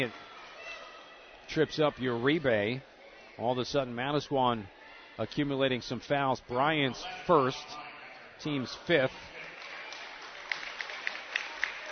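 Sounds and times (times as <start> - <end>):
speech: 0.0 - 0.2, 1.5 - 9.3
hands clapping: 9.3 - 11.9.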